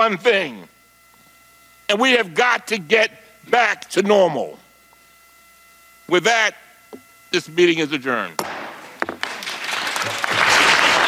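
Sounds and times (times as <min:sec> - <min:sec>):
speech: 0:00.0 - 0:00.8, 0:01.9 - 0:04.6, 0:06.1 - 0:08.6
applause at the end of a congressional hearing: 0:09.2 - 0:11.0.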